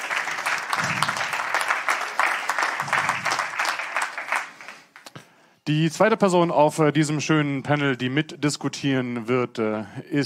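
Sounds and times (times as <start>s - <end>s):
audience applause: 0.0s - 5.1s
speech: 5.7s - 10.2s.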